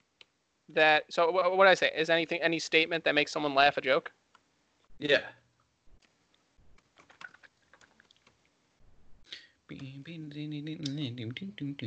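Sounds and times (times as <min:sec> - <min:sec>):
speech: 0:00.7 - 0:04.2, 0:05.0 - 0:05.4, 0:09.7 - 0:11.8
typing on a computer keyboard: 0:06.8 - 0:08.4.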